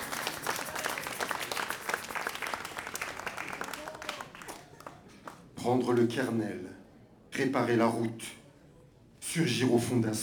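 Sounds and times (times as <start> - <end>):
audience applause: 0.0 - 5.0
speech: 5.6 - 6.8, 7.4 - 8.4, 9.3 - 10.2.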